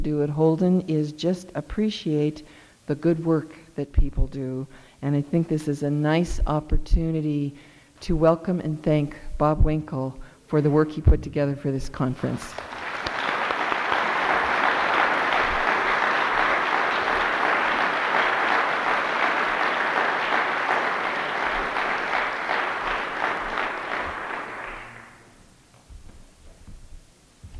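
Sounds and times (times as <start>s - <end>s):
speech: 0.0s - 13.0s
conference audience applause welcoming a speaker: 12.6s - 25.3s.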